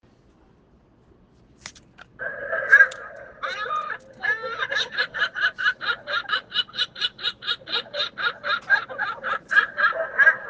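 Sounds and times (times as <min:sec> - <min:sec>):
seagulls laughing: 0:02.2 - 0:10.4.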